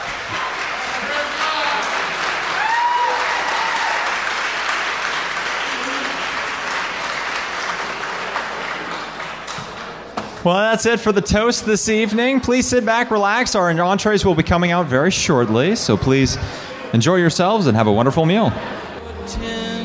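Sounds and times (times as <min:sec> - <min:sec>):
audience applause for toast givers: 0:00.0 - 0:10.1
speech: 0:10.4 - 0:19.4.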